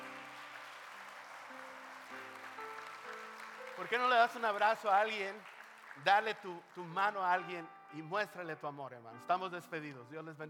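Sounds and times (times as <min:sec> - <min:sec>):
audience applauding: 0:00.0 - 0:07.4
speech: 0:03.8 - 0:10.4.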